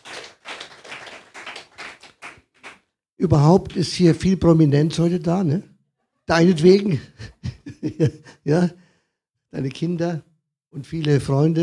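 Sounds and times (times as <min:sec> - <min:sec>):
audience clapping: 0:00.0 - 0:02.9
speech: 0:03.2 - 0:05.7, 0:06.3 - 0:08.8, 0:09.5 - 0:11.6
laughter: 0:06.3 - 0:08.3.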